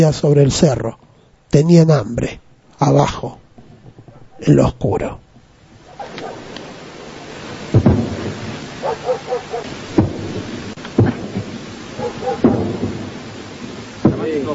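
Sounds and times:
speech: 0.0 - 3.4, 4.4 - 5.2, 14.3 - 14.5
Falklands war sound effects, explosions: 7.2 - 8.8, 9.7 - 14.5.

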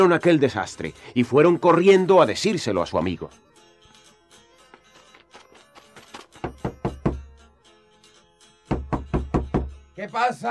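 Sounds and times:
speech: 0.0 - 3.5, 10.0 - 10.4
urgent knocking on a door: 6.4 - 7.3, 8.7 - 9.8.

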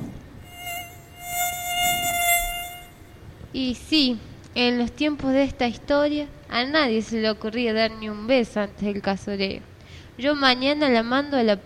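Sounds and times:
mosquitoes buzzing: 0.4 - 3.2
speech: 3.6 - 11.6.

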